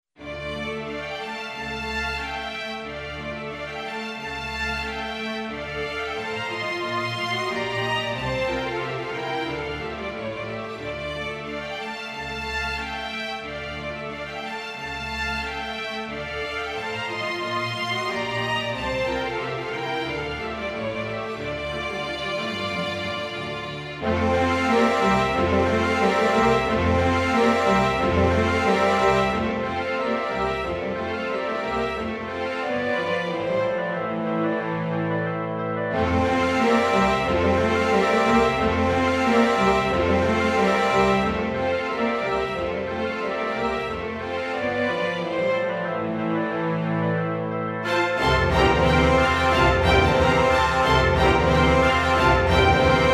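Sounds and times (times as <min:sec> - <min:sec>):
polka music: 0:00.2 - 0:53.1.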